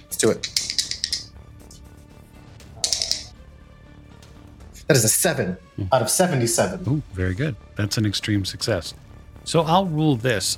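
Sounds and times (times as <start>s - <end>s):
dice rattling and clattering across a hard surface: 0.1s - 1.3s, 2.8s - 3.3s
speech: 0.2s - 0.5s, 4.9s - 10.5s.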